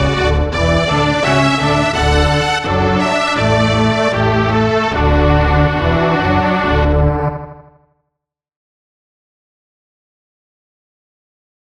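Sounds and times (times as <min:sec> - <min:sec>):
16-bit music loop: 0:00.0 - 0:07.4.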